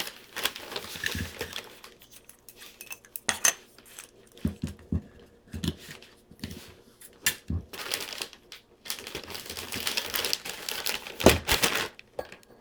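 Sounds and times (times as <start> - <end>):
wrapping a present: 0.0 - 2.3, 5.6 - 12.2.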